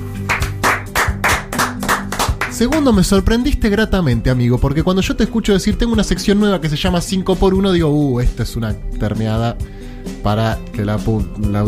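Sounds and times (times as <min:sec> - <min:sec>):
clapping: 0:00.2 - 0:03.0
speech: 0:02.6 - 0:11.6.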